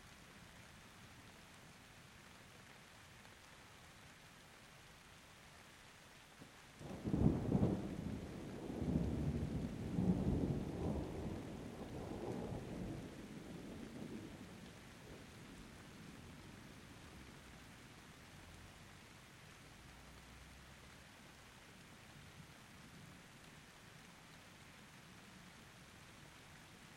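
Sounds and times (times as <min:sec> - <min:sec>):
rain: 0:00.0 - 0:26.9.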